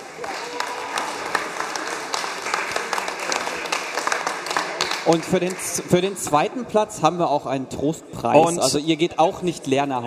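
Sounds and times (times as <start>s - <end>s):
short audience applause: 0.0s - 6.2s
speech: 5.1s - 10.0s.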